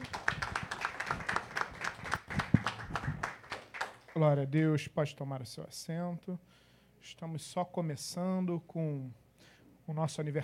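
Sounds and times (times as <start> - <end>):
audience clapping: 0.0 - 4.3
speech: 4.2 - 9.2, 9.9 - 10.4.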